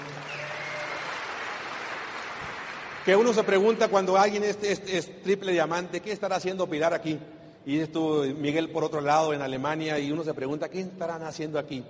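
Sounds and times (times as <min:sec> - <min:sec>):
audience applause: 0:00.0 - 0:03.8
speech: 0:03.1 - 0:11.8.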